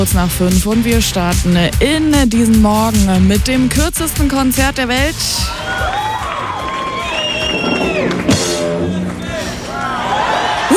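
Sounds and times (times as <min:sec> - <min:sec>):
speech: 0:00.0 - 0:06.0
concert crowd cheering: 0:05.4 - 0:10.7.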